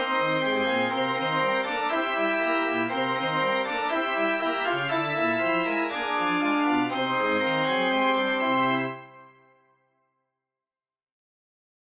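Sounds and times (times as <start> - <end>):
organ interlude: 0.0 - 9.3.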